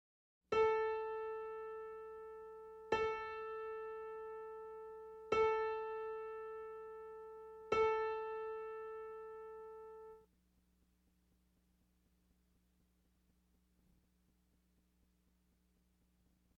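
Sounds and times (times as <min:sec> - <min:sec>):
middle C on a piano: 0:00.5 - 0:10.2.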